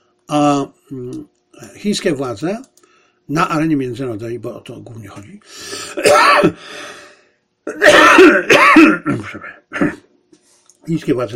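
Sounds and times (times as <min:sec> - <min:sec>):
speech: 0:00.3 - 0:02.7, 0:03.3 - 0:07.0, 0:07.7 - 0:10.0, 0:10.8 - 0:11.3
person coughing while choking mid-speech: 0:05.7 - 0:06.7, 0:07.7 - 0:10.1
throat clearing from a person choking mid-speech: 0:07.7 - 0:10.1.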